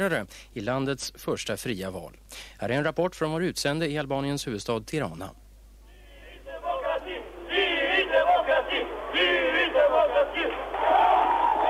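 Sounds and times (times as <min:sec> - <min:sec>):
speech: 0:00.0 - 0:05.4
chanted calls: 0:05.9 - 0:11.6
crowd cheering at night rally: 0:06.6 - 0:11.6.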